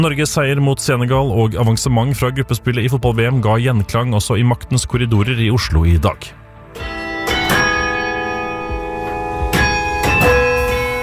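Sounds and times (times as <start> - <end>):
speech: 0.0 - 7.0
Oslo city hall bells chiming a melody: 6.8 - 11.0.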